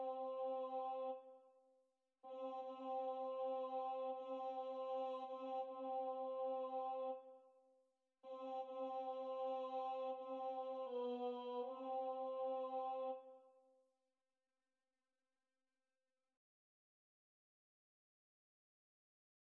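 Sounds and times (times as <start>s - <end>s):
tenor choir singing: 0.0s - 1.2s, 2.3s - 7.3s, 8.3s - 13.3s.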